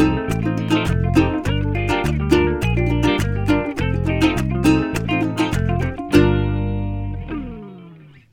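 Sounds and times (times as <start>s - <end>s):
latin guitar music: 0.0s - 8.3s.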